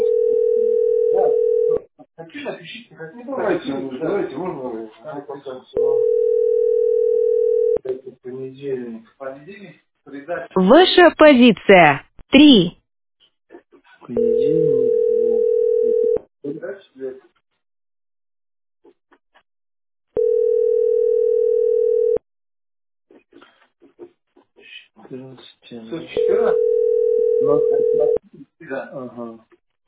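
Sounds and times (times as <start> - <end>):
telephone line tone: 0.0 - 1.8, 5.8 - 7.8, 14.2 - 16.2, 20.2 - 22.2, 26.1 - 28.2
speech: 2.5 - 7.2, 7.8 - 12.8, 14.1 - 14.7, 25.0 - 29.6.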